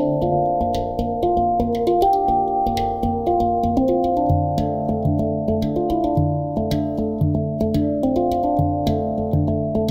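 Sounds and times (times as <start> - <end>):
handpan notes in D minor: 0.0 - 9.8.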